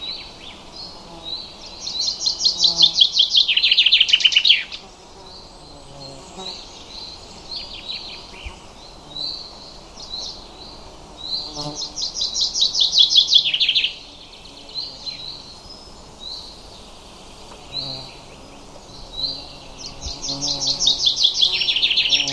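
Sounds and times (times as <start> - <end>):
bird chirping: 0.0 - 22.3.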